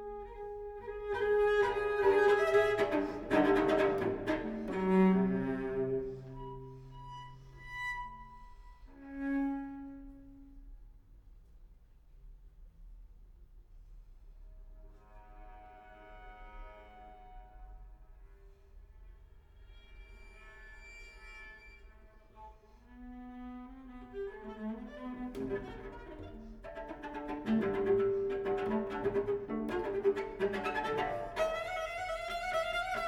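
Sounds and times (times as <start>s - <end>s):
solo cello sonata: 0.0s - 10.8s, 14.8s - 18.7s, 22.0s - 33.0s.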